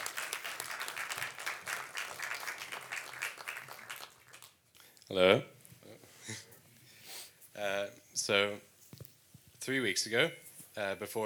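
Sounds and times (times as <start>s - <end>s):
audience applause: 0.0s - 4.6s
speech: 5.1s - 5.6s, 7.6s - 8.7s, 9.6s - 11.2s.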